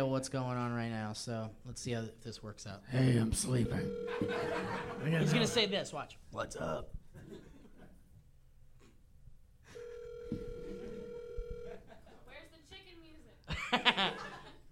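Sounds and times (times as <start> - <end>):
speech: 0.0 - 7.4, 13.7 - 14.3
phone ring tone: 3.5 - 5.6, 9.7 - 11.9
people laughing: 4.1 - 5.6, 11.7 - 12.3, 13.5 - 14.7.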